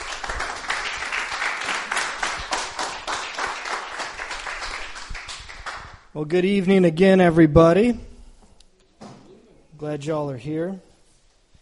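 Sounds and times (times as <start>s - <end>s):
crowd cheering: 0.0s - 5.2s
applause: 0.0s - 6.1s
speech: 6.2s - 8.1s, 9.8s - 10.9s.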